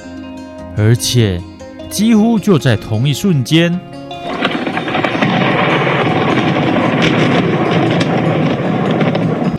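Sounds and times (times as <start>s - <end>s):
speech: 0.8s - 4.0s
close thunderclap rolling into rumble after lightning: 3.4s - 9.5s.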